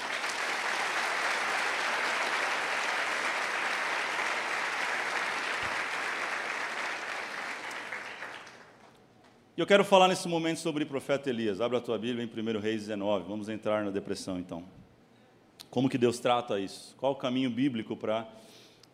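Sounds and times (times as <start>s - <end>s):
audience applause: 0.0s - 8.9s
speech: 9.6s - 14.8s, 15.7s - 18.9s.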